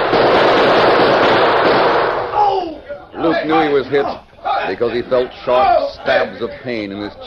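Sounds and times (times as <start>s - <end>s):
gunfire shootout: 0.0s - 2.6s
speech: 3.3s - 7.2s.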